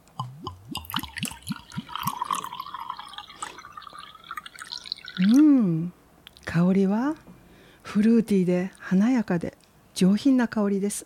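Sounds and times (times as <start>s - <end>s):
chilled junmai ginjo sake pouring into a wine glass: 0.2s - 5.4s
speech: 5.2s - 7.2s, 7.9s - 11.0s.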